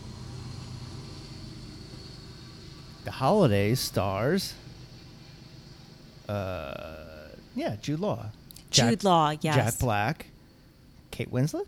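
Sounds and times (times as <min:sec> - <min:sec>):
train passing: 0:00.0 - 0:08.4
speech: 0:03.1 - 0:04.7, 0:06.3 - 0:10.3, 0:11.1 - 0:11.6.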